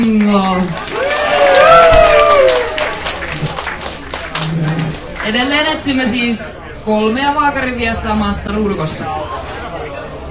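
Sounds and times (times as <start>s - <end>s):
speech: 0.0s - 0.9s, 5.3s - 9.5s
crowd applauding and cheering at a bingo game in a bar: 0.0s - 5.5s.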